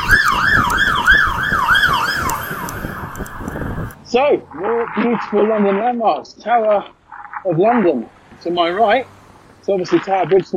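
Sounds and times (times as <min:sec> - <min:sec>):
fire engine siren: 0:00.0 - 0:04.0
speech: 0:04.1 - 0:10.5.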